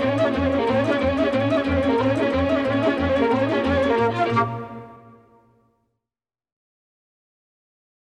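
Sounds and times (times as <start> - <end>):
folk orchestra playing Romanian folk music: 0.0 - 5.4
nai pan flute: 0.0 - 5.5.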